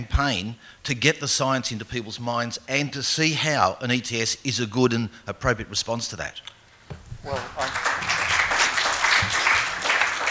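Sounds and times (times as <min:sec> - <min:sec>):
speech: 0:00.0 - 0:07.8
audience applauding during a political discussion: 0:07.2 - 0:10.2.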